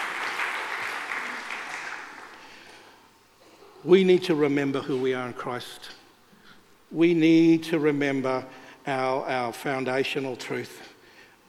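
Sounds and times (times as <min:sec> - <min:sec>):
audience applause: 0:00.0 - 0:02.7
speech: 0:03.8 - 0:06.0, 0:06.9 - 0:10.9.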